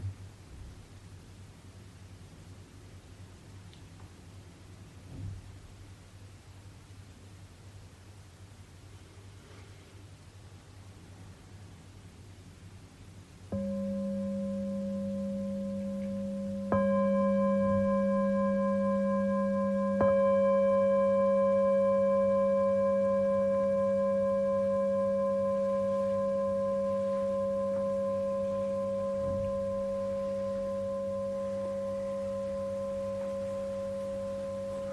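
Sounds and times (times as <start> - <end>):
meditation bell ringing: 13.5 - 34.9.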